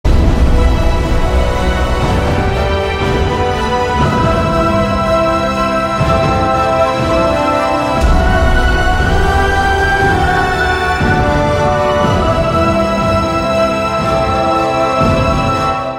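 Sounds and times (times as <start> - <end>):
romantic background music: 0.1 - 15.9.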